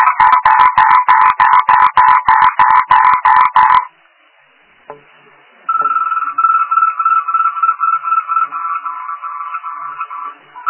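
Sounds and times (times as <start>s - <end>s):
frog croaking: 0.0s - 3.9s, 5.7s - 10.6s
short steady tone: 5.7s - 6.6s.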